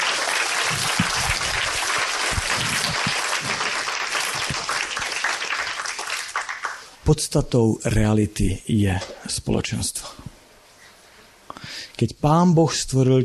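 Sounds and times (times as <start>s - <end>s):
audience at an evening church service applauding: 0.0s - 6.9s
speech: 7.1s - 10.3s, 12.0s - 13.2s.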